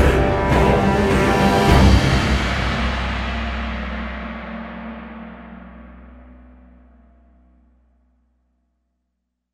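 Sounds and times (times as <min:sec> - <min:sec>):
orchestra: 0:00.0 - 0:03.9.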